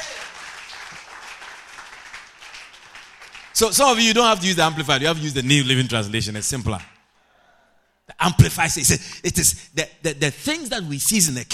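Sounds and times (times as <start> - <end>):
audience clapping: 0.0 - 5.2, 6.5 - 7.0
speech: 3.6 - 6.9, 8.2 - 11.5.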